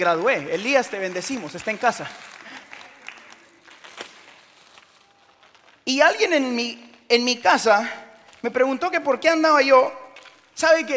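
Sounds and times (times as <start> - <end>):
speech: 0.0 - 2.4, 5.9 - 10.0, 10.6 - 10.9
audience applause: 0.0 - 3.8.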